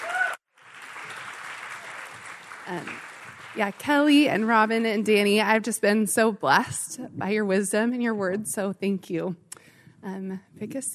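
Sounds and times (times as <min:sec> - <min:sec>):
audience applause: 0:00.0 - 0:04.4
speech: 0:02.7 - 0:09.4, 0:10.0 - 0:10.9.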